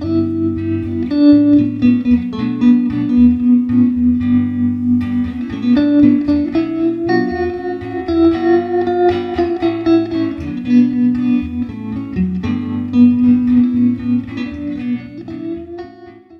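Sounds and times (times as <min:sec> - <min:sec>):
tremolo solo: 0:00.0 - 0:16.3.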